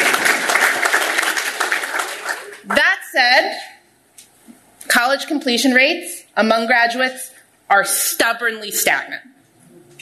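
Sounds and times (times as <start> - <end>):
audience applause: 0.0 - 2.8
speech: 3.2 - 3.7, 5.0 - 9.3.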